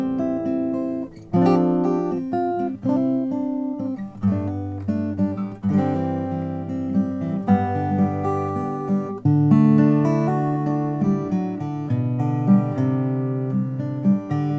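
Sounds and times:
Lowden custom F50c acoustic guitar playing: 0.0s - 14.5s.

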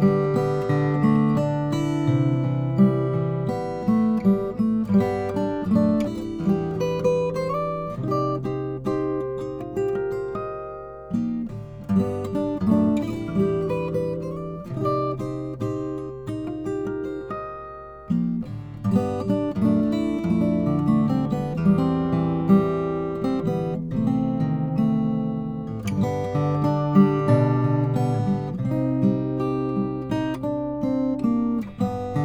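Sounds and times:
koa acoustic guitar playing: 0.0s - 32.2s.

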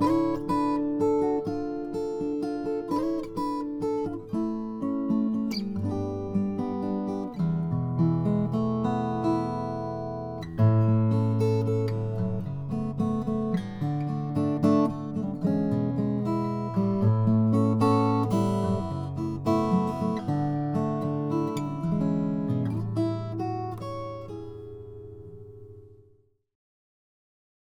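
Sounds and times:
koa acoustic guitar playing: 0.0s - 26.2s.

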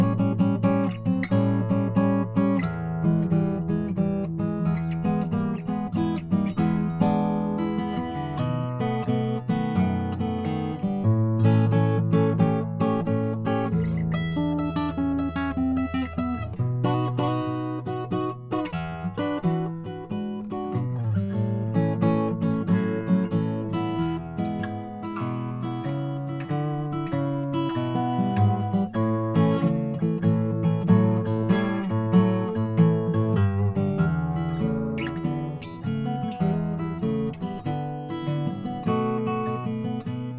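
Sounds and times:
Froggy Bottom H12 Brazili guitars: 0.0s - 40.3s.

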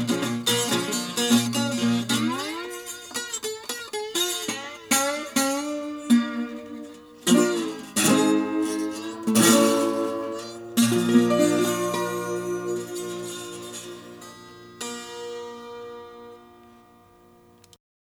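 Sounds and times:
yellow burst acoustic guitar: 0.0s - 17.7s.

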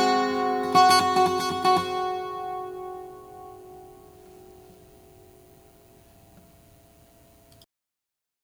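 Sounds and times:
harmonica in natural tuning: 0.0s - 5.6s.

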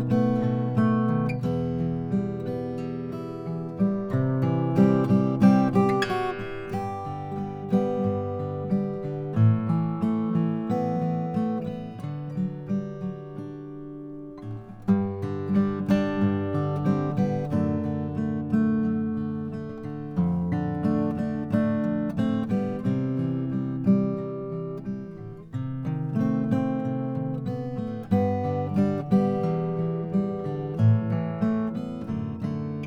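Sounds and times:
Froggy Bottom Brazilian guitar playing: 0.0s - 32.8s.

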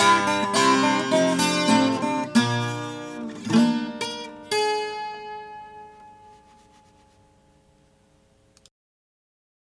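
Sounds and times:
sunburst Harmony Stella H922 acoustic guitar: 0.0s - 8.6s.

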